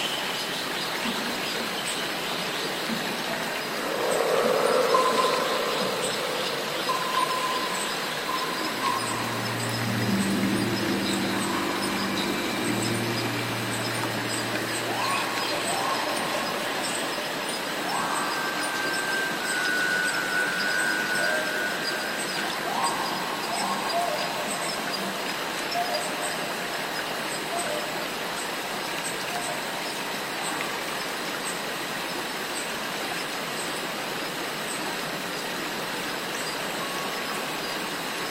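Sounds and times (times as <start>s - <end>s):
cicadas: 0.0s - 38.3s
low droning hum: 3.7s - 25.1s.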